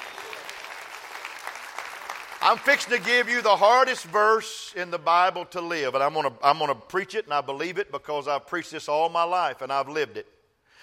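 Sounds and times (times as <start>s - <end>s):
crowd clapping: 0.0s - 4.4s
speech: 2.4s - 10.4s.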